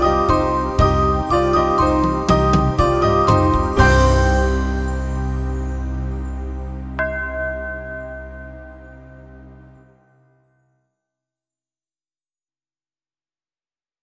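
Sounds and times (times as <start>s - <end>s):
Ukrainian bell carol: 0.0s - 9.8s.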